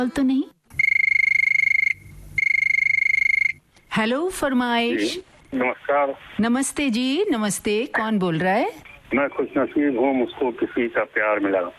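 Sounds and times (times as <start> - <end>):
speech: 0.0 - 0.6, 4.0 - 11.7
telephone ringing: 0.8 - 3.6.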